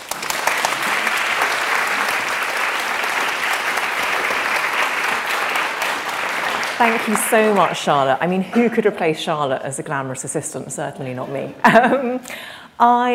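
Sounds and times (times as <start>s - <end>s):
audience applause welcoming a speaker to the stage: 0.0s - 8.3s
speech: 6.8s - 13.1s.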